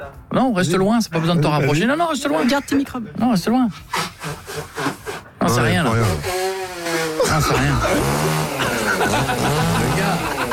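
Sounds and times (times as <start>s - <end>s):
speech: 0.1s - 4.7s, 5.5s - 6.4s, 7.4s - 10.3s
laughter: 1.2s - 3.2s, 7.1s - 10.5s
nose blowing: 3.7s - 10.0s.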